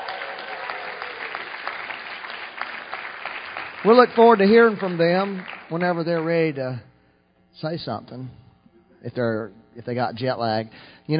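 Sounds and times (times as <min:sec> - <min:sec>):
audience applause: 0:00.0 - 0:06.4
speech: 0:03.8 - 0:06.9, 0:07.6 - 0:08.4, 0:09.0 - 0:11.1.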